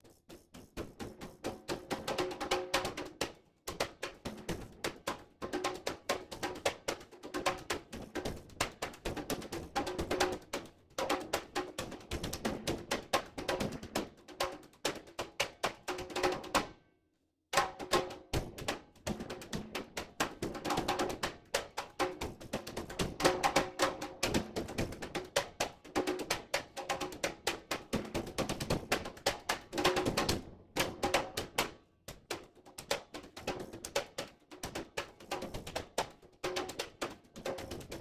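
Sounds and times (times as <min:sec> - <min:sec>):
congas: 0:00.0 - 0:16.7, 0:17.6 - 0:37.9.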